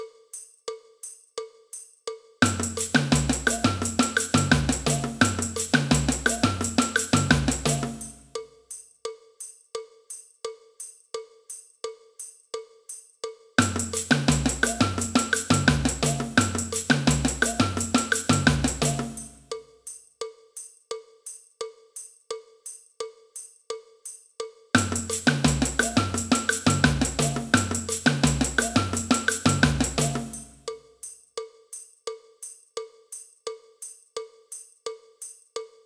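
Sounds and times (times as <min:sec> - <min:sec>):
cowbell: 0:00.3 - 0:35.8
samba band: 0:02.4 - 0:08.3, 0:13.6 - 0:19.6, 0:24.8 - 0:30.7.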